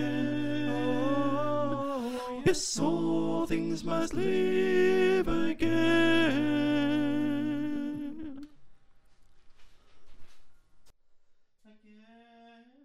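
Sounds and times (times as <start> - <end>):
choir with soprano: 0.0 - 8.5.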